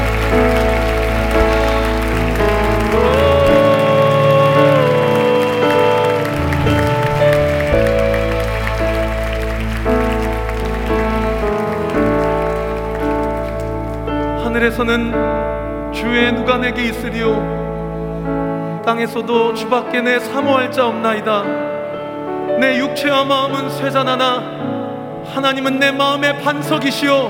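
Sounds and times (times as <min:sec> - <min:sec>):
audience applause: 0:00.0 - 0:14.4
organ-like chords: 0:00.0 - 0:18.9
speech: 0:14.6 - 0:17.6, 0:18.9 - 0:21.7, 0:22.6 - 0:24.6, 0:25.3 - 0:27.2.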